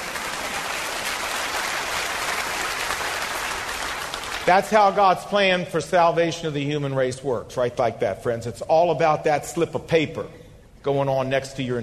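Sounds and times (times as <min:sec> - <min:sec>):
audience applauding: 0:00.0 - 0:04.7
speech: 0:04.5 - 0:11.8.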